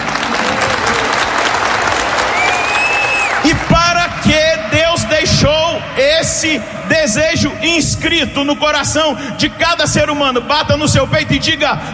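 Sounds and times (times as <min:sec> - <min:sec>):
audience applause: 0:00.0 - 0:05.5
speech: 0:06.4 - 0:11.9.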